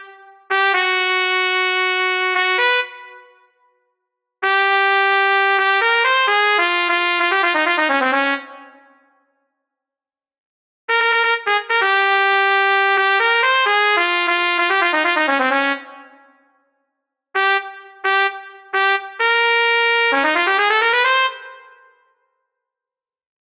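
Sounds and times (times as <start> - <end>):
flugelhorn: 0.0 - 3.6, 4.4 - 9.0, 10.9 - 16.5, 17.4 - 22.1.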